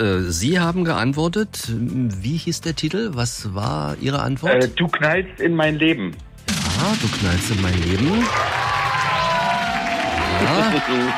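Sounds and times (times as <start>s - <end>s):
speech: 0.0s - 8.6s, 10.4s - 11.1s
cheering and applause: 7.8s - 11.1s.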